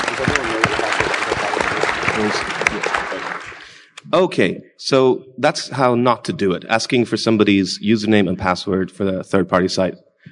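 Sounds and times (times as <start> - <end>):
audience applause: 0.0 - 3.9
speech: 2.2 - 3.0, 4.1 - 10.1.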